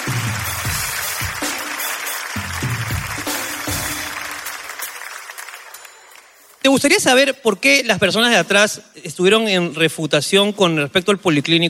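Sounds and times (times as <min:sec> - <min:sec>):
audience applause: 0:00.0 - 0:06.6
speech: 0:06.6 - 0:11.6.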